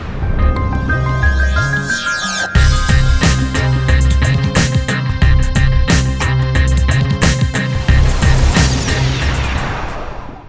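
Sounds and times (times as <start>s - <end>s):
hip hop RnB music: 1.0s - 9.6s.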